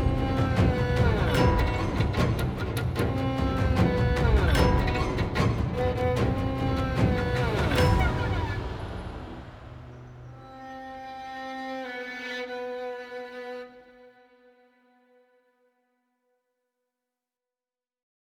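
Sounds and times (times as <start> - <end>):
battle music: 0.0 - 10.4.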